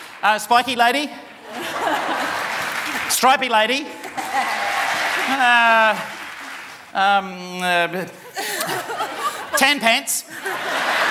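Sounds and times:
few audience claps: 0.0s - 7.0s
speech: 0.2s - 2.0s, 3.1s - 4.6s, 5.3s - 6.1s, 6.9s - 10.9s
laughter: 1.4s - 3.1s, 3.9s - 6.8s, 8.0s - 11.1s.

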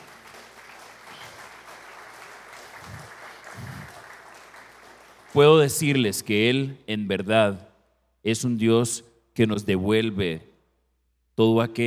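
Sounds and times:
crowd applauding: 0.0s - 5.9s
speech: 5.4s - 10.5s, 11.4s - 11.8s.

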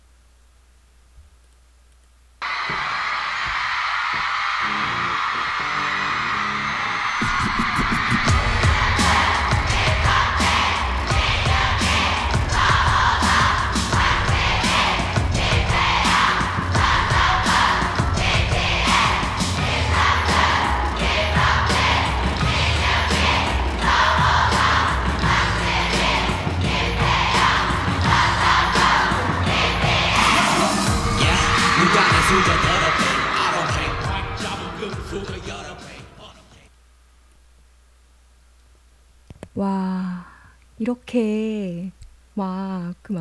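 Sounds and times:
fans chanting members' names: 2.4s - 36.6s
speech: 41.1s - 41.5s, 42.4s - 43.1s.

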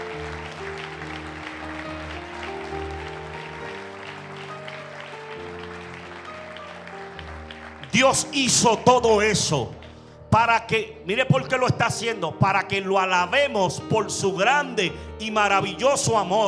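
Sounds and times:
crowd clapping: 0.0s - 10.3s
sustained keyboard chords: 0.0s - 16.4s
speech: 8.0s - 16.4s.

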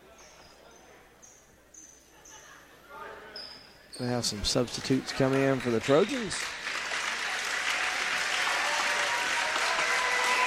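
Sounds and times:
speech: 4.0s - 6.6s
crowd applauding players going to bench: 4.4s - 10.4s.

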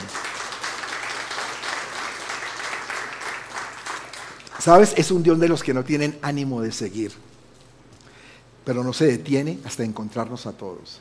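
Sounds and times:
applause: 0.0s - 5.0s
speech: 4.6s - 7.3s, 8.7s - 10.9s.

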